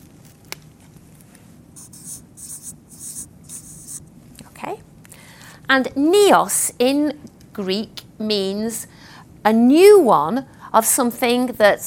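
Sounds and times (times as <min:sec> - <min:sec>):
pen scratching on paper writing a Greek word: 0:01.8 - 0:04.0
speech: 0:05.7 - 0:11.8.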